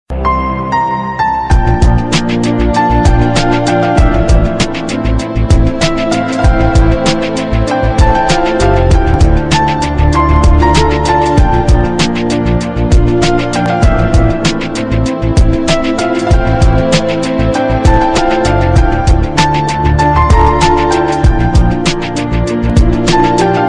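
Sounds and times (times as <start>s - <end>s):
love tune: 0.1s - 23.6s.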